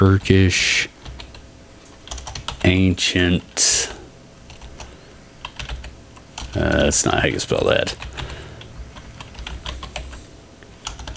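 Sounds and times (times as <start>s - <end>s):
speech: 0.0s - 0.9s, 2.6s - 4.0s, 6.6s - 8.3s
rapid typing on a computer keyboard: 1.0s - 2.6s, 4.5s - 11.1s.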